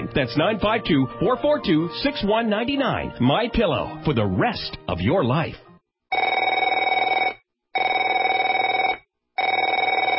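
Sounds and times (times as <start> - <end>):
speech: 0.2 - 5.7
telephone ringing with a trilling bell tone: 6.1 - 10.1.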